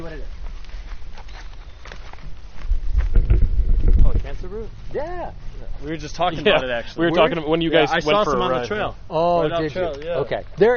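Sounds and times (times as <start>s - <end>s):
footsteps of people walking along a woodland trail: 0.0s - 4.4s
speech: 4.9s - 10.7s.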